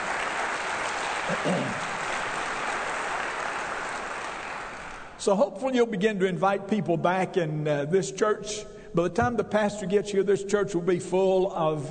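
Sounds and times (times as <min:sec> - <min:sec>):
audience applauding: 0:00.0 - 0:05.2
speech: 0:01.3 - 0:02.0, 0:05.2 - 0:11.9.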